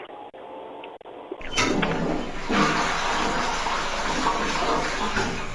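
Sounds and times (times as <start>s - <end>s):
toilet flushing in a porcelain bowl and refilling: 1.4s - 5.5s.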